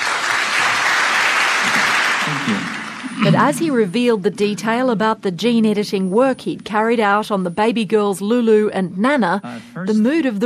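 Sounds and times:
polite applause from conference audience: 0.0s - 3.5s
speech: 3.2s - 10.4s.

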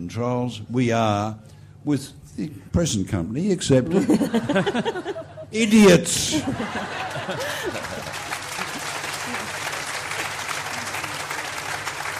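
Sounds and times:
speech: 0.1s - 8.2s
laughter: 3.9s - 11.6s
large crowd applause: 6.6s - 12.1s.

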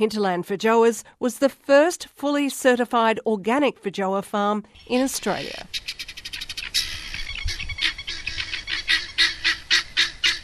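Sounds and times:
speech: 0.0s - 5.9s
guinea fowl calling: 4.8s - 10.4s.

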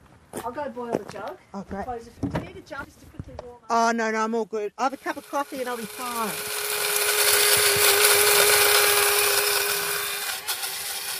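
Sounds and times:
speech: 0.5s - 6.6s
grinder grinding roasted wattle seed: 4.8s - 11.1s.

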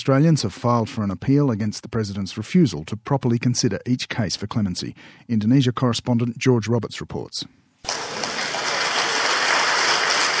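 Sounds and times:
speech: 0.0s - 8.0s
Islamic Congress audience in Yogyakarta applauding the president: 7.9s - 10.3s.

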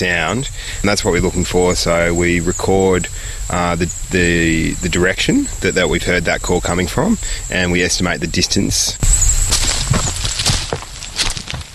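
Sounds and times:
speech: 0.0s - 9.3s
footsteps walking along a dark, straight road at night: 9.1s - 11.7s.

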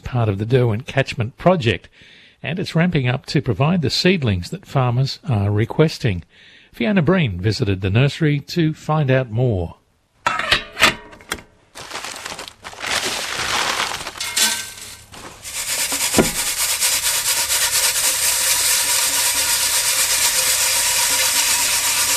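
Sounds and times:
speech: 0.1s - 9.8s
clinks and scrapes of sieves: 10.3s - 11.4s, 14.1s - 18.8s
blackwood seed rattling as it is sieved: 11.8s - 22.1s.

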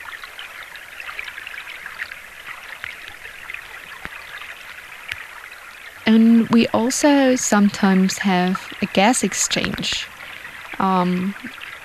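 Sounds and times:
gravel and sand washing down a creek: 0.0s - 11.8s
speech: 6.1s - 10.1s, 10.8s - 11.6s.

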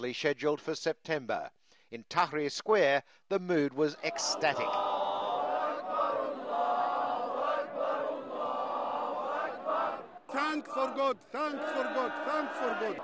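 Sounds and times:
speech: 0.0s - 5.0s, 10.3s - 13.0s
celebrating crowd cheering and chanting in a city square: 4.0s - 13.0s.

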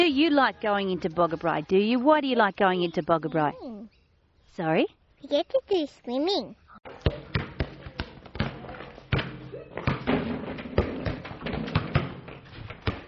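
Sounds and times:
speech: 0.1s - 3.7s, 4.6s - 7.3s
basketball bouncing on a hard court: 6.9s - 13.0s.

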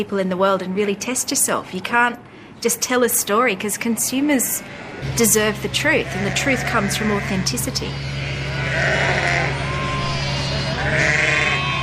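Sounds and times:
speech: 0.0s - 9.1s
low steady hum: 0.0s - 11.8s
lambs bleating on a Gingin farm: 5.9s - 11.8s.

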